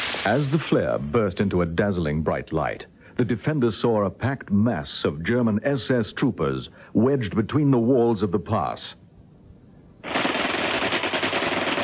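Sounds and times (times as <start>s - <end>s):
speech: 0.2s - 9.0s
machine gun fire: 10.0s - 11.8s.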